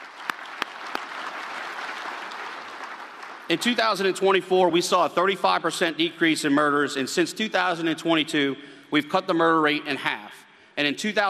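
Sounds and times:
audience applause: 0.0s - 3.6s
speech: 3.5s - 11.2s.

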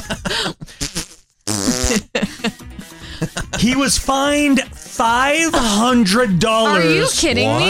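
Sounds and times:
loud drawn-out fart: 0.8s - 2.2s
speech: 1.9s - 2.1s, 3.7s - 7.6s.

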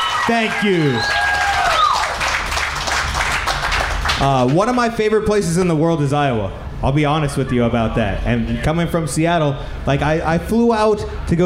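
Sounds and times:
audience applause: 0.0s - 4.6s
speech: 0.3s - 1.3s, 4.2s - 11.4s.

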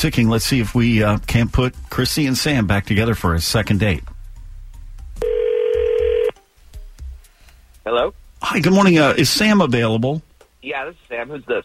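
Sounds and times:
speech: 0.0s - 4.1s, 7.9s - 11.6s
quiet hiss: 0.0s - 11.6s
telephone ringback tone: 5.2s - 6.4s.

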